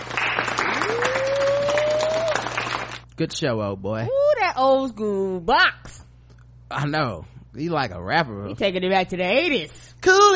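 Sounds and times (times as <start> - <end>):
golf clap, soft polite clapping: 0.0 - 3.0
speech: 3.2 - 6.0, 6.7 - 10.3.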